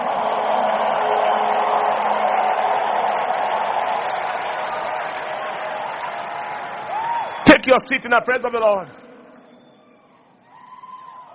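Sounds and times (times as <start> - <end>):
large crowd clapping: 0.0 - 9.0
speech: 7.6 - 9.0.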